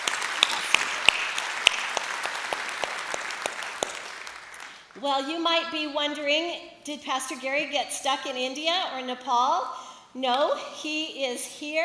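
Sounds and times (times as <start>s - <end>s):
church congregation applauding at a morning service to welcome guests: 0.0s - 5.0s
speech: 5.0s - 11.8s.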